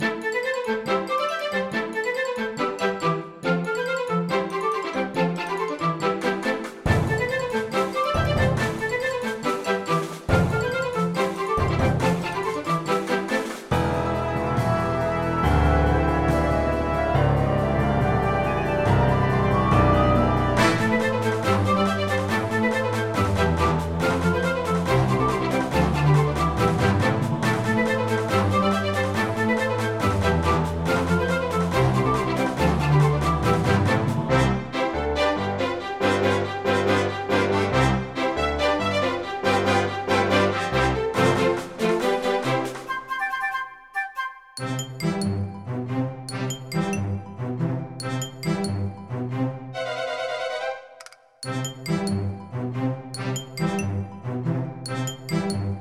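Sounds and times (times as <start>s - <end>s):
orchestra: 0.0s - 55.7s.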